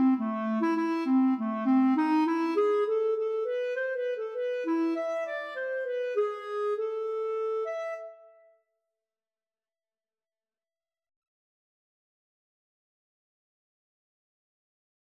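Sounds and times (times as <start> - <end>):
polska tune: 0.0 - 8.4.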